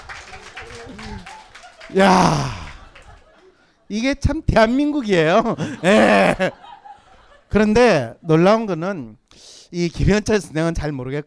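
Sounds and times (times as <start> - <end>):
audience applause: 0.0 - 3.7
laughter: 0.1 - 3.9, 5.2 - 7.5
speech: 0.9 - 2.6, 3.9 - 6.6, 7.5 - 11.2.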